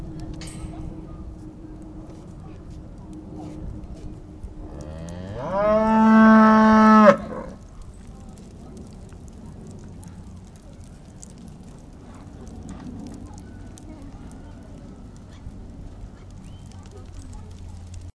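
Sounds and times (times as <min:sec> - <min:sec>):
cow mooing: 0:04.8 - 0:07.6.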